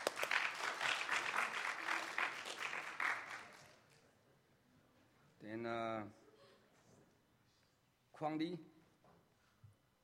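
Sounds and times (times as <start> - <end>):
audience applause: 0.0 - 3.7
speech: 5.6 - 6.2, 8.2 - 8.7.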